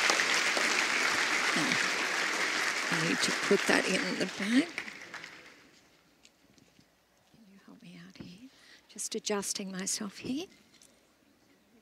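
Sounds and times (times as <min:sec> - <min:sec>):
people clapping: 0:00.0 - 0:05.8
speech: 0:01.5 - 0:01.9, 0:02.9 - 0:04.9, 0:09.1 - 0:10.6.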